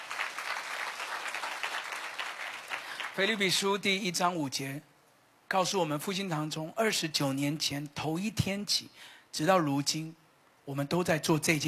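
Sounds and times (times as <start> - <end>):
audience clapping hands: 0.0 - 3.6
speech: 3.2 - 4.9, 5.5 - 11.6.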